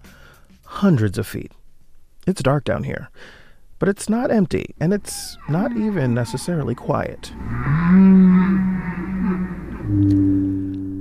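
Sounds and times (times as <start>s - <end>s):
speech: 0.8s - 1.6s, 2.3s - 8.7s
humpback and blue whale vocalizations underwater off the coast of California: 5.2s - 10.9s.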